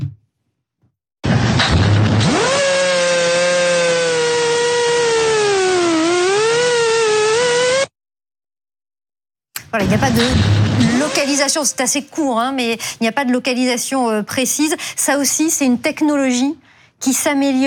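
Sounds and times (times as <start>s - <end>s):
Russian attack drone flying: 1.3s - 7.9s, 9.8s - 11.8s
speech: 9.7s - 17.6s.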